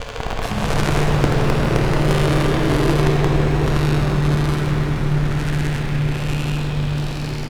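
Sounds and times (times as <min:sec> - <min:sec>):
long decaying effect: 0:00.0 - 0:07.5.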